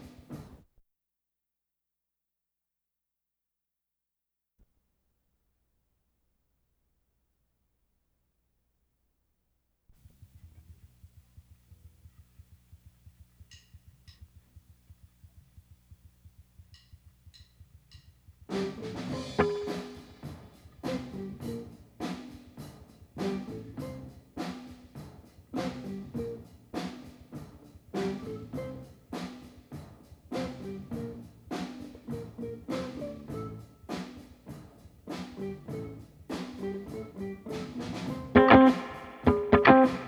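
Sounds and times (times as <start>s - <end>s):
guitar: 18.5s - 40.0s.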